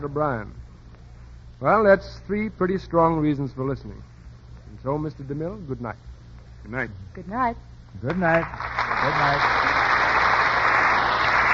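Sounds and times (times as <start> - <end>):
speech: 0.0 - 0.6, 1.6 - 4.1, 4.8 - 9.7
studio audience applause: 8.0 - 11.5.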